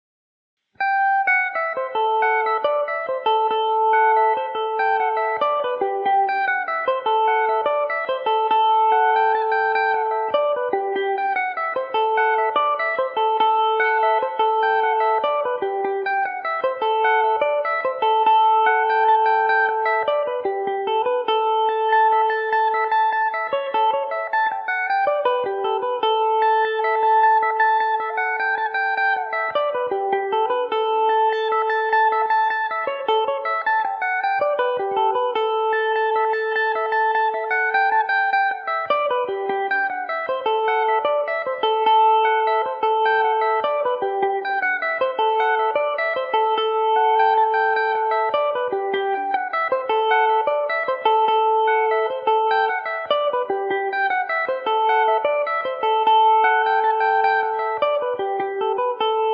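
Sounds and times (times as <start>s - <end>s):
Irish mandolin in A dorian: 0.8s - 59.3s.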